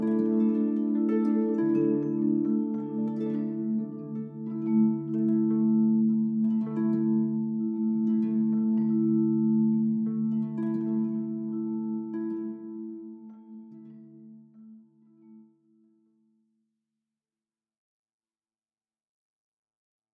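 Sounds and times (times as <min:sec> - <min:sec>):
beatless music: 0:00.0 - 0:15.3.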